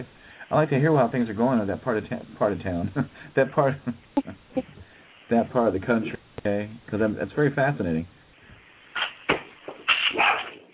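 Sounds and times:
speech: 0:00.0 - 0:04.7, 0:05.3 - 0:08.2
dog barking: 0:10.1 - 0:10.6.

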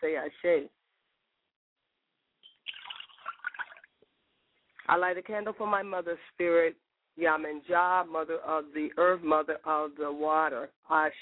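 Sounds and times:
speech: 0:00.0 - 0:00.8, 0:04.9 - 0:11.2
liquid libation being poured: 0:02.4 - 0:04.0.

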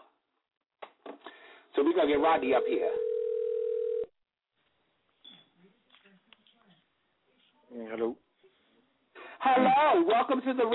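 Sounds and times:
thin voice over a phone line: 0:01.8 - 0:03.3
speech: 0:02.0 - 0:03.1, 0:10.3 - 0:10.7
steady telephone tone: 0:02.6 - 0:04.1.

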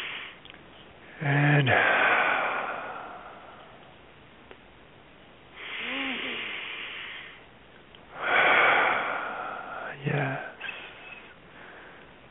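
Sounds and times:
deep breath in during a guided meditation: 0:00.0 - 0:00.4, 0:01.0 - 0:04.0, 0:05.6 - 0:07.4, 0:08.1 - 0:12.2
speech: 0:01.2 - 0:02.1.

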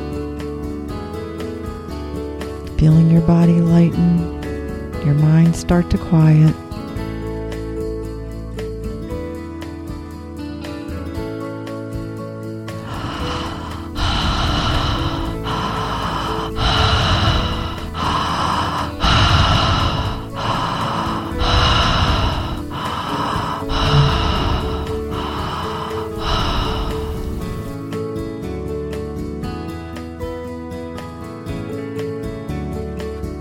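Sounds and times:
soft sustained music: 0:00.0 - 0:33.4
speech: 0:02.8 - 0:04.4, 0:05.0 - 0:06.6
slow deep breathing: 0:12.8 - 0:28.0.

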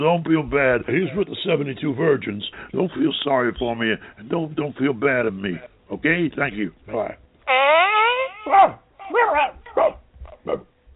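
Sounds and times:
speech: 0:00.0 - 0:10.7
dog barking: 0:08.4 - 0:10.6.

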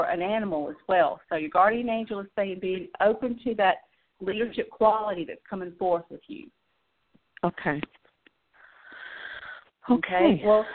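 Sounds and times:
speech: 0:00.0 - 0:06.6, 0:07.4 - 0:08.0, 0:09.8 - 0:10.7
breathing: 0:03.8 - 0:04.2, 0:08.5 - 0:09.8.

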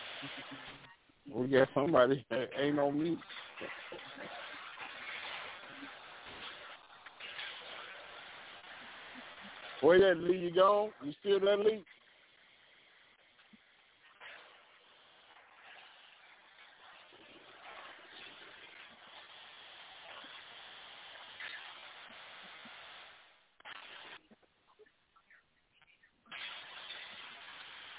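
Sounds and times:
car being washed at a car wash: 0:00.0 - 0:00.9, 0:01.7 - 0:24.2, 0:26.3 - 0:27.9
speech: 0:00.2 - 0:04.1, 0:09.8 - 0:12.0.

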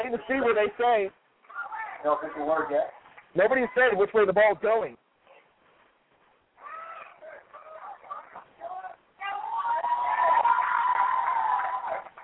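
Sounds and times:
speech: 0:00.1 - 0:01.2, 0:02.0 - 0:05.0
crowd cheering: 0:08.7 - 0:12.2.

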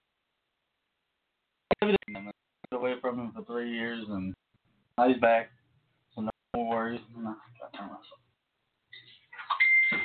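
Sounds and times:
speech: 0:01.8 - 0:04.4, 0:05.0 - 0:05.6, 0:06.2 - 0:08.2
phone electronic notification tone: 0:09.6 - 0:10.0.

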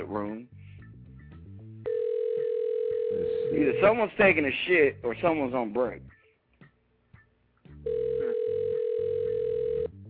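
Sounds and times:
speech: 0:00.0 - 0:00.6, 0:03.5 - 0:06.1
telephone ringing with a steady electronic tone: 0:01.9 - 0:03.9, 0:07.9 - 0:09.9.

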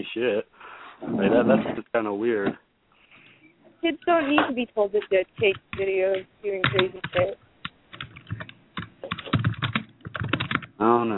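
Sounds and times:
speech: 0:00.0 - 0:02.6, 0:03.8 - 0:07.4, 0:10.8 - 0:11.1
typing on a computer keyboard: 0:04.3 - 0:10.8.

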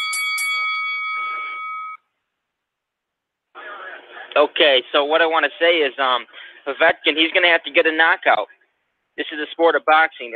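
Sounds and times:
three-minute boxing round clock bell ringing: 0:00.0 - 0:02.0
speech: 0:04.4 - 0:08.6, 0:09.2 - 0:10.3.

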